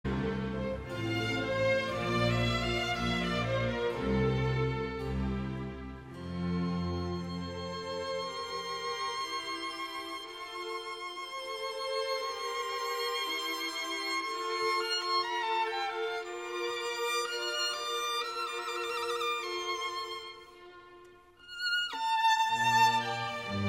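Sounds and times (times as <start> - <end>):
violin concerto: 0.0 - 23.6.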